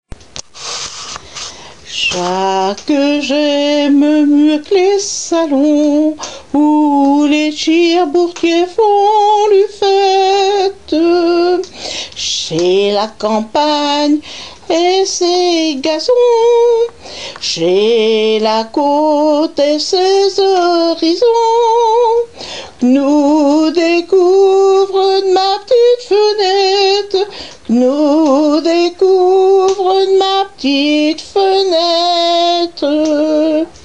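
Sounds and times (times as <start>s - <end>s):
song sung in patois: 0.6s - 33.8s.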